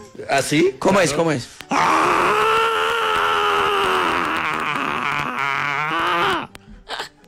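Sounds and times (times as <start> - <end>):
speech: 0.2 - 2.5
person imitating an angry cartoonish scream: 1.7 - 6.5.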